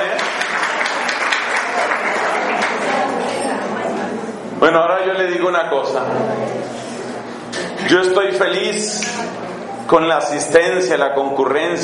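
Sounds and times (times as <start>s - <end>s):
audience applause: 0.0s - 3.3s
murmur of voices: 0.0s - 11.8s
speech: 4.6s - 6.8s, 7.8s - 11.8s.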